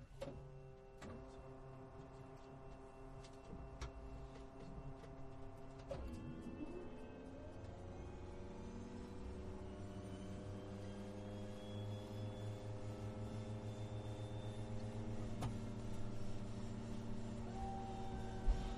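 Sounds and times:
propeller plane: 0:00.1 - 0:18.7.

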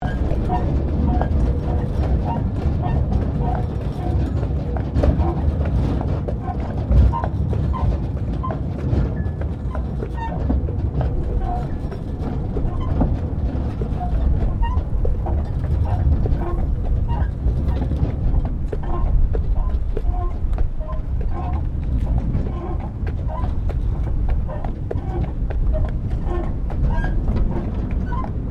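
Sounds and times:
horse-drawn tram carriage rolling: 0:00.0 - 0:28.4.

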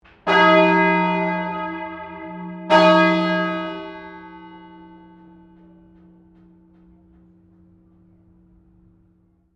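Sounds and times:
St Pauls Cathedral Melbourne bell ringing: 0:00.2 - 0:07.4.

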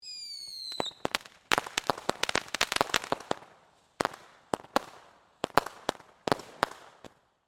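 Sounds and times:
firework whistles: 0:00.0 - 0:02.9
firework cracks and pops: 0:00.2 - 0:07.4.

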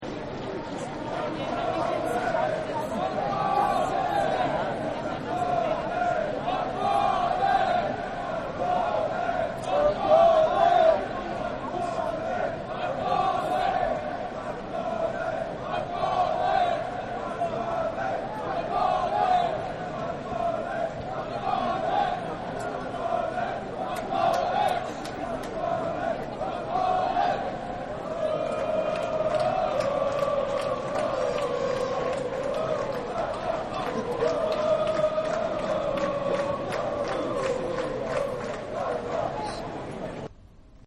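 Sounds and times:
stadium crowd chanting: 0:00.0 - 0:40.3.

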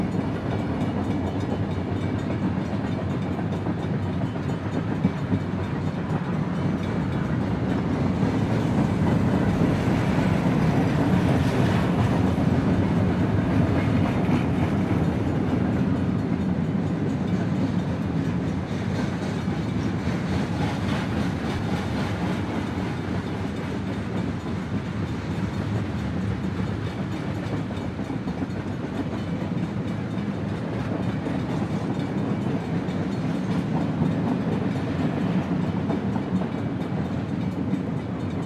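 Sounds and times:
train passing by: 0:00.0 - 0:38.4.

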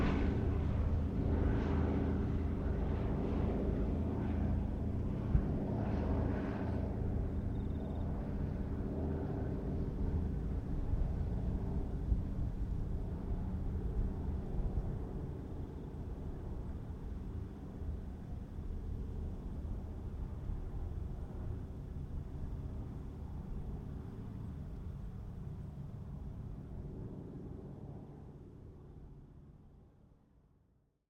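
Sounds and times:
squadron of DC3 airplanes passing: 0:00.0 - 0:29.9.

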